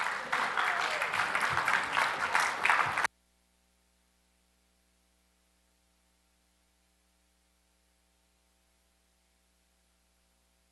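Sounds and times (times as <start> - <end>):
cheers: 0.0 - 3.1
crowd applauding: 0.0 - 3.1.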